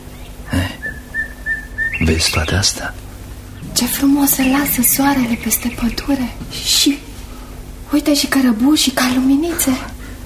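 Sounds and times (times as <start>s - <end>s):
nightingales singing at dusk: 0.0s - 3.0s, 3.6s - 6.7s
speech: 2.0s - 3.0s, 3.8s - 7.1s, 7.9s - 9.9s.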